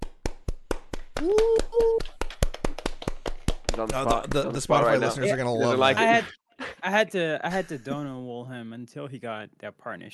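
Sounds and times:
round of applause: 0:00.7 - 0:04.8
speech: 0:01.2 - 0:01.8, 0:03.8 - 0:10.1.

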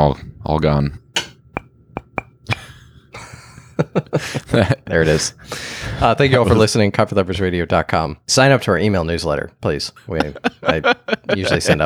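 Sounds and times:
speech: 0:00.0 - 0:01.0, 0:03.8 - 0:11.8
ceramic coffee mugs knocking together: 0:01.2 - 0:02.6
laughter: 0:02.5 - 0:05.2, 0:10.1 - 0:11.8.

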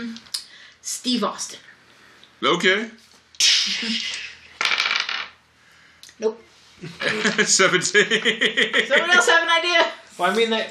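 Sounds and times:
speech: 0:00.9 - 0:01.7, 0:02.4 - 0:03.0, 0:03.6 - 0:04.2, 0:06.2 - 0:10.6
dice rolled across a hard surface during a game: 0:04.6 - 0:05.4
laughter: 0:06.8 - 0:09.9.

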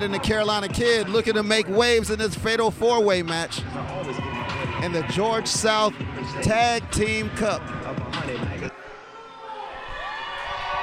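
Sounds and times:
speech: 0:00.0 - 0:08.4
wrestling crowd cheering and roaring: 0:03.7 - 0:10.8
wrestling crowd whoops and shouts: 0:09.0 - 0:10.8.

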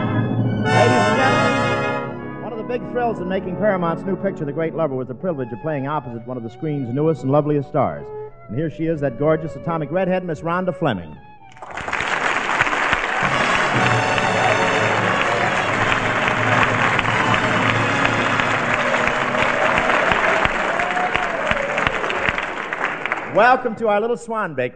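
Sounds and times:
audience applause: 0:00.7 - 0:02.0, 0:11.5 - 0:23.7
speech: 0:02.7 - 0:11.8, 0:23.4 - 0:24.7.

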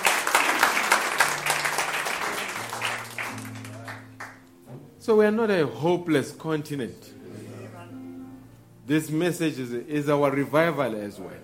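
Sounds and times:
audience applause: 0:00.0 - 0:04.5
speech: 0:05.0 - 0:07.1, 0:08.9 - 0:11.4.

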